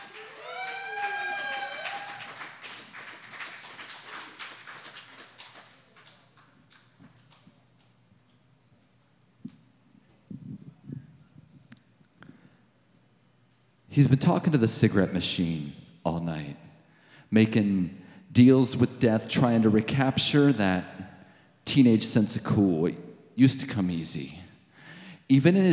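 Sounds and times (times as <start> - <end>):
crowd clapping for a poet: 0.0 - 7.5
whoops and whistles: 0.3 - 2.2
speech: 14.0 - 16.6, 17.3 - 20.9, 21.7 - 24.4, 25.3 - 25.7.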